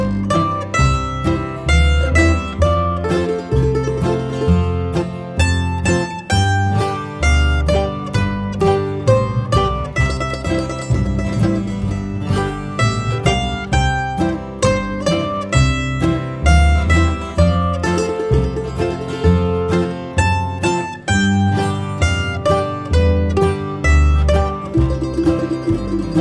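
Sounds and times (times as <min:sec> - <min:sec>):
mandolin playing: 0:00.0 - 0:26.1.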